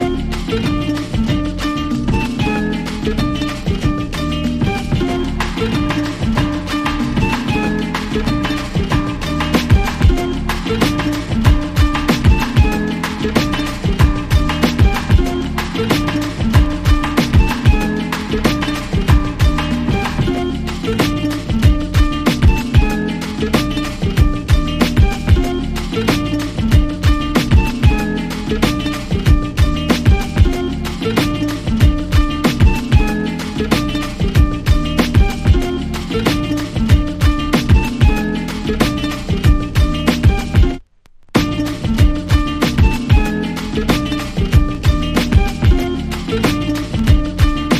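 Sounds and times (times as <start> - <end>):
instrumental samba music: 0.0 - 47.7.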